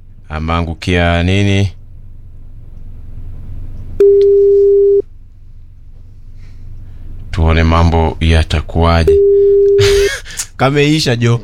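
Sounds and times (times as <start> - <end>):
low hum: 0.0 - 11.4
speech: 0.3 - 1.8, 4.0 - 4.5, 7.4 - 11.4
telephone tone on an unanswered mobile call: 4.0 - 5.0, 9.1 - 9.8.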